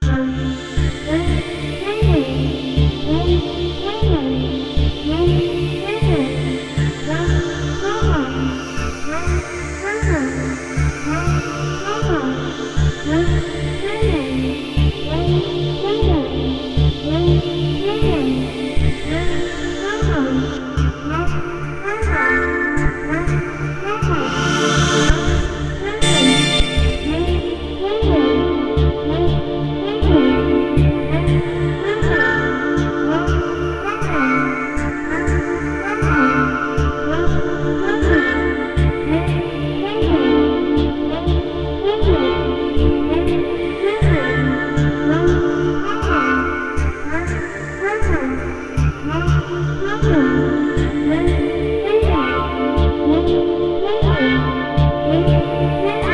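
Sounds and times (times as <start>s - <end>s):
multi part synth pad: 0.0s - 56.1s.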